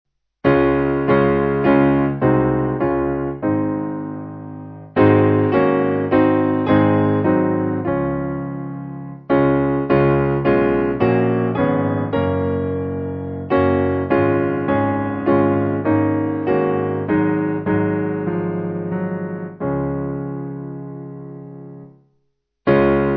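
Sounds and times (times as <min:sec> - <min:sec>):
piano backing: 0:00.4 - 0:23.1.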